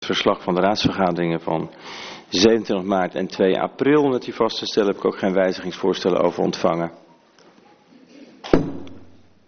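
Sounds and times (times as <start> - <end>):
speech: 0.1 - 7.0
gavel striking: 8.5 - 9.3.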